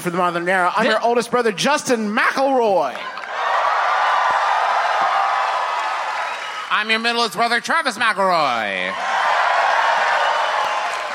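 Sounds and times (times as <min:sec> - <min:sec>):
speech: 0:00.0 - 0:03.2, 0:06.7 - 0:09.1
triumphant round of applause: 0:02.9 - 0:07.6, 0:09.0 - 0:11.1.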